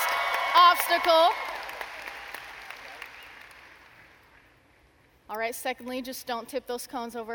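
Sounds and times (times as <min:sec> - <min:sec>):
round of applause: 0:00.0 - 0:04.4
speech: 0:00.6 - 0:01.4, 0:05.3 - 0:07.3.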